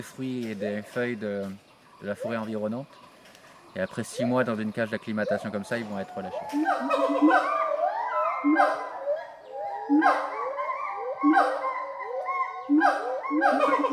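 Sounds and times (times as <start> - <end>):
speech: 0.0 - 3.1, 3.7 - 7.6, 8.4 - 8.9, 9.9 - 10.3, 11.2 - 11.6, 12.7 - 13.9
siamang gibbon alarm call: 6.2 - 9.0, 9.9 - 13.9.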